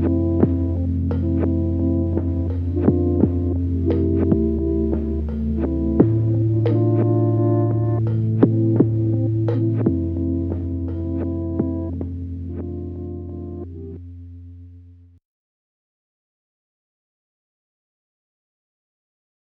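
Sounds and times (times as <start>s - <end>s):
music beat: 0.0s - 14.0s.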